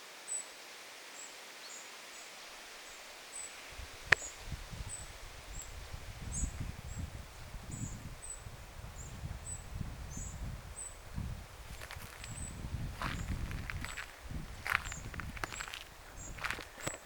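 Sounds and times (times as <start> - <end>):
Eurasian wren begging calls: 3.4 - 17.0
low rustling or rumbling noise: 3.4 - 17.0.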